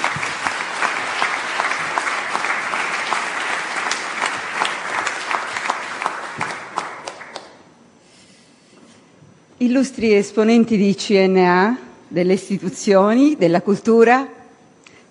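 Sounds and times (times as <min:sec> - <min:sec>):
audience applause: 0:00.0 - 0:07.6
speech: 0:09.6 - 0:14.4.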